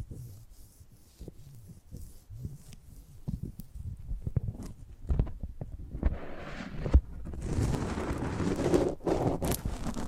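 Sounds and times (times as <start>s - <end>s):
microphone handling: 2.4s - 10.0s.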